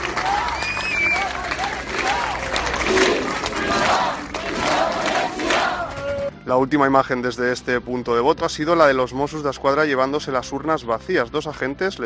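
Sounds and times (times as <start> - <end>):
large crowd chanting pro-independence chants: 0.0 - 6.2
speech: 6.5 - 12.0.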